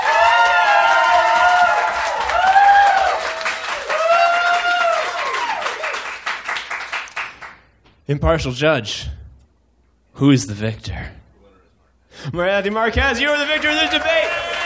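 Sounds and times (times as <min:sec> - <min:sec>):
crowd cheering and whooping: 0:00.0 - 0:06.1, 0:13.2 - 0:14.6
crowd clapping: 0:00.0 - 0:07.7, 0:12.6 - 0:14.6
speech: 0:08.1 - 0:09.2, 0:10.2 - 0:11.2, 0:12.2 - 0:14.5.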